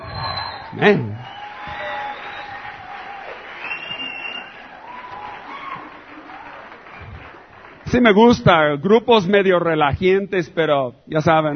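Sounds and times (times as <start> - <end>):
audience applauding: 0.0 - 8.7
speech: 0.8 - 1.2, 7.9 - 11.5.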